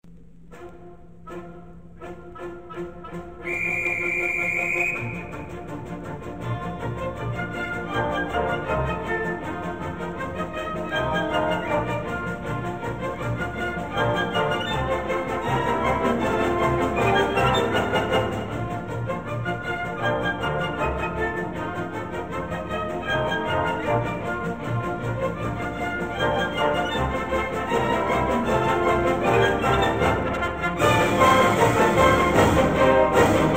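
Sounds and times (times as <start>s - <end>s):
symphony orchestra playing: 0.5s - 33.5s.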